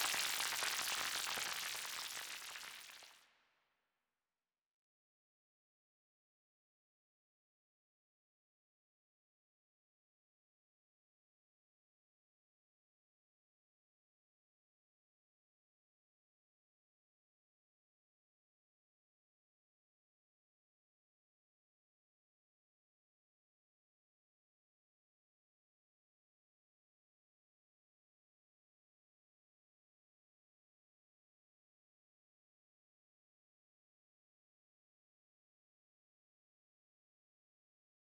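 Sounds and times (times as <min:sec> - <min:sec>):
rain: 0:00.0 - 0:03.2.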